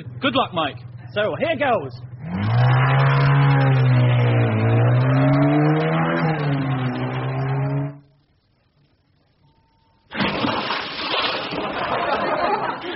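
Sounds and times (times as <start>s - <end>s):
speech: 0.0s - 2.8s
motorbike engine revving: 0.0s - 8.1s
laughter: 11.5s - 12.9s.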